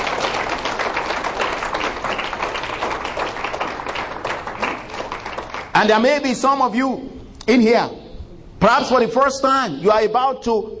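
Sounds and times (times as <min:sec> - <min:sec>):
audience clapping hands: 0:00.0 - 0:06.1
speech: 0:05.8 - 0:08.0, 0:08.6 - 0:10.7.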